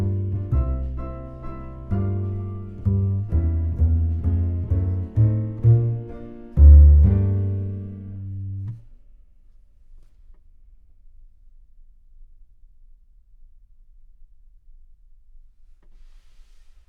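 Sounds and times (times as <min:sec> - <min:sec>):
synth bass: 0:00.0 - 0:08.8.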